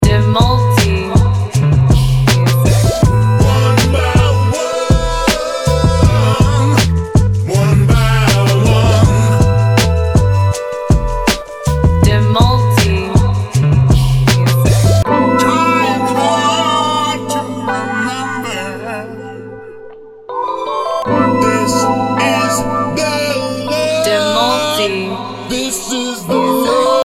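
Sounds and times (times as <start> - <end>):
EDM drums: 0.0 - 15.1
soulful blues vocals: 0.0 - 27.0.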